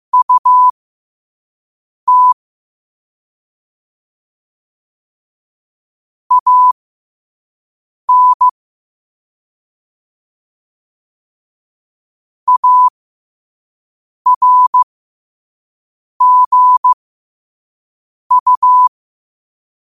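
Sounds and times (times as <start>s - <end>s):
morse code at 5 wpm: 0.1s - 0.7s, 2.1s - 2.4s, 6.3s - 6.8s, 8.1s - 8.5s, 12.5s - 12.9s, 14.3s - 14.8s, 16.2s - 17.0s, 18.3s - 18.9s.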